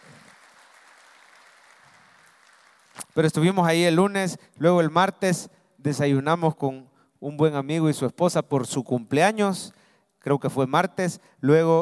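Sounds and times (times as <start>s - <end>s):
audience applause: 0.0s - 3.1s
speech: 3.2s - 11.8s.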